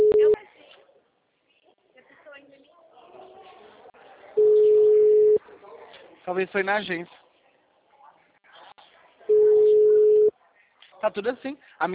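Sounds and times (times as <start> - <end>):
telephone ringback tones while a call is placed: 0.0 - 0.4, 4.4 - 5.4, 9.3 - 10.3
quiet talk: 0.0 - 11.9
speech: 6.3 - 7.2, 11.0 - 11.9.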